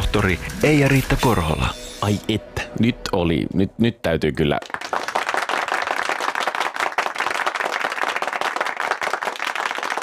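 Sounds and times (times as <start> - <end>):
speech: 0.1 - 4.9
people clapping: 4.5 - 10.0.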